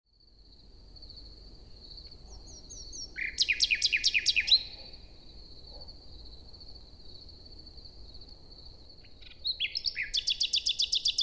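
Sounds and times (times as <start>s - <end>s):
common nightingale singing morning song in a forest in Luxembourg: 2.0s - 5.9s, 9.0s - 11.2s.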